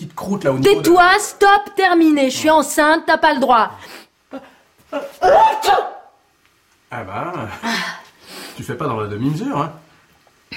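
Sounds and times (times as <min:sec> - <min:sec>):
speech: 0:00.3 - 0:05.8, 0:06.9 - 0:07.9, 0:08.6 - 0:09.8
person sneezing: 0:03.8 - 0:06.1.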